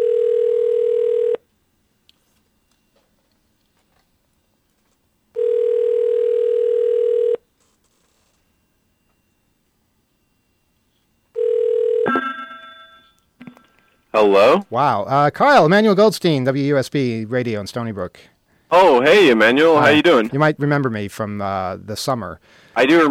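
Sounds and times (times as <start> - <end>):
landline telephone ringback tones: 0.0 - 1.5, 5.3 - 13.2
speech: 14.2 - 23.0.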